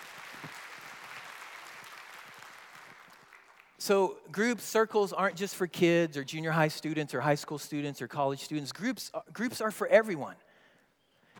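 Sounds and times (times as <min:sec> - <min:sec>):
audience applause: 0:00.0 - 0:03.8
speech: 0:03.8 - 0:10.4.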